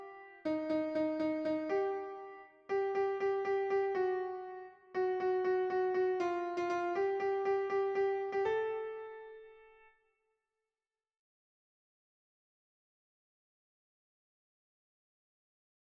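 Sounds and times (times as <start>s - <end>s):
alto piano: 0.0s - 10.0s.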